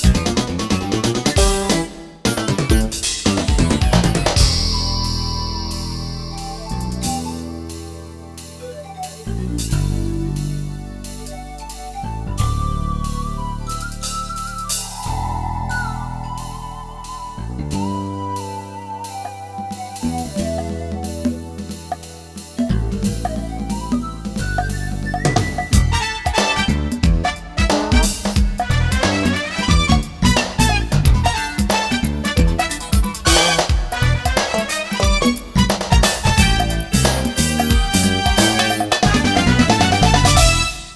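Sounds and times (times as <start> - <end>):
synthesizer factory demo songs: 0.0 - 22.4, 23.0 - 40.9.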